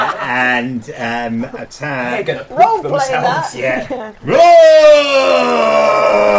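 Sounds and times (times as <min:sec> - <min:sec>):
speech: 0:00.3 - 0:06.3
person bellowing roar: 0:04.2 - 0:06.3.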